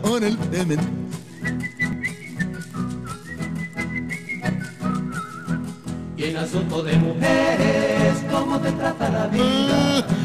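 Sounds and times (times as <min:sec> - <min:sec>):
speech: 0:00.2 - 0:01.6, 0:06.2 - 0:10.2
person whistling a tune: 0:01.2 - 0:06.0.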